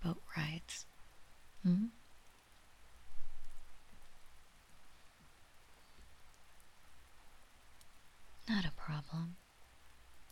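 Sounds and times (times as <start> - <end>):
speech: 0.0 - 0.9, 1.6 - 2.0
rain falling outside a window: 0.0 - 10.2.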